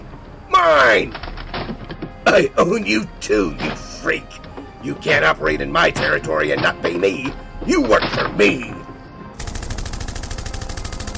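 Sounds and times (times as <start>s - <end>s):
speech: 0.9s - 1.3s, 2.3s - 8.8s
rapid automatic gunfire in a radio drama shootout: 9.4s - 11.1s.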